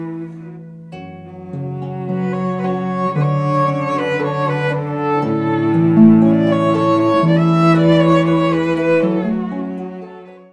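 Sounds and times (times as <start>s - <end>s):
harp trio playing: 1.9s - 10.2s.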